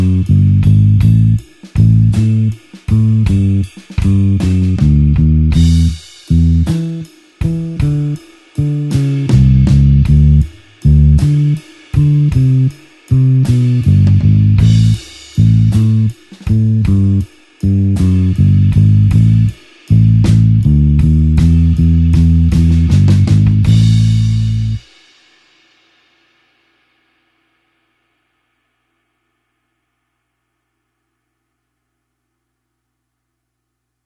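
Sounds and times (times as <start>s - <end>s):
slow blues bassline in A: 0.0s - 24.8s.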